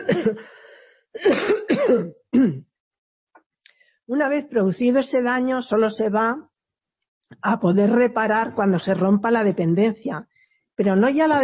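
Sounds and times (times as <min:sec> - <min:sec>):
speech: 0:00.0 - 0:02.7, 0:04.1 - 0:06.5, 0:07.3 - 0:11.4
throat clearing by a lecturer: 0:01.2 - 0:02.8.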